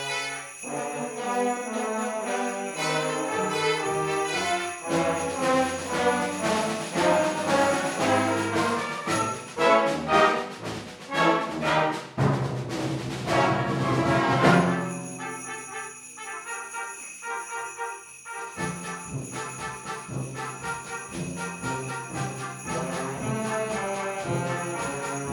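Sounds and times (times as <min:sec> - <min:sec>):
bells ringing: 0:00.0 - 0:09.5, 0:14.6 - 0:25.3
band playing: 0:00.0 - 0:15.7, 0:18.5 - 0:25.3.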